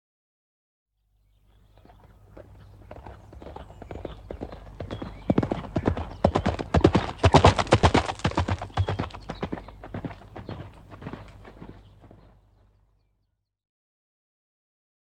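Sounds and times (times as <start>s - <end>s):
horse galloping: 1.8s - 12.7s.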